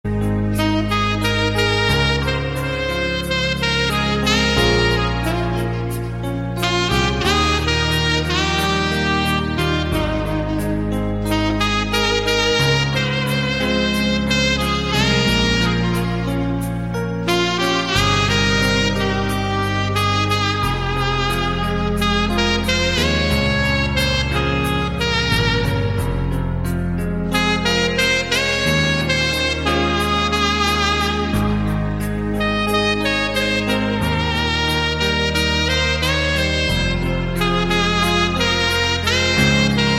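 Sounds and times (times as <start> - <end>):
saxophone: 0.0 - 39.9.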